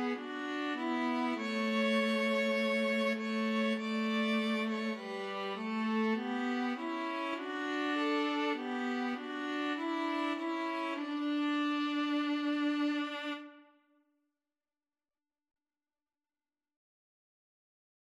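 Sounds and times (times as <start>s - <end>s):
string trio playing: 0.0s - 13.6s.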